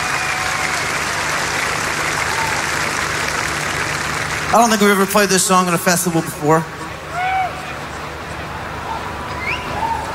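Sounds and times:
festival crowd applause: 0:00.0 - 0:10.1
speech: 0:04.5 - 0:06.8.

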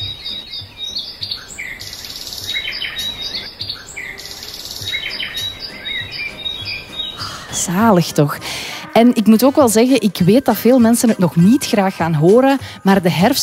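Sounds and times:
dense dawn chorus of many birds singing: 0:00.0 - 0:07.8
speech: 0:07.6 - 0:13.4.

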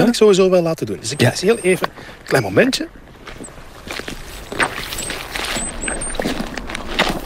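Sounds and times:
speech: 0:00.1 - 0:04.2
boots squelching through soggy peat bog: 0:01.6 - 0:07.2.

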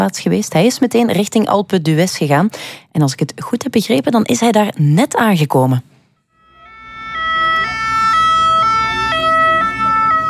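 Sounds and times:
speech: 0:00.0 - 0:05.9
two-tone police siren: 0:06.3 - 0:10.2
faint traffic rumble: 0:06.5 - 0:10.2.

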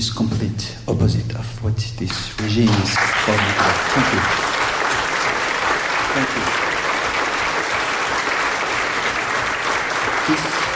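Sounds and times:
speech: 0:00.0 - 0:04.6
audience applause: 0:02.4 - 0:10.7.

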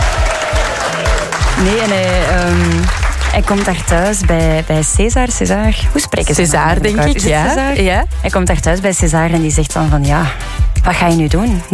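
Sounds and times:
applause: 0:00.0 - 0:04.7
speech: 0:01.6 - 0:11.7.

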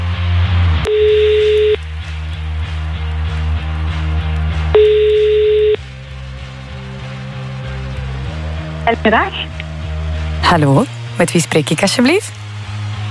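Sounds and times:
continuous music bed: 0:00.0 - 0:13.0
outgoing phone call ringing tone beeps: 0:00.9 - 0:01.8, 0:04.8 - 0:05.8
speech: 0:09.0 - 0:09.5, 0:10.5 - 0:12.4.

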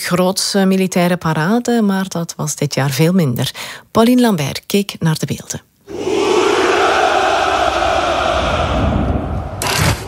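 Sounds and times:
speech: 0:00.0 - 0:06.2
Russian soldiers shouting hurrah at a Victory Day parade: 0:05.9 - 0:10.0.

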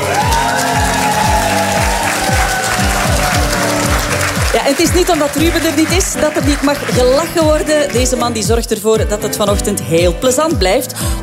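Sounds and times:
applause: 0:00.0 - 0:08.4
speech: 0:04.7 - 0:11.2.

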